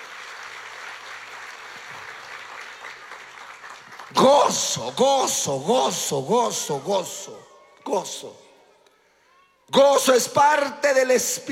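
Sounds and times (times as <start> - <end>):
audience applause: 0.0 - 4.8
speech: 4.1 - 8.4, 9.7 - 11.4.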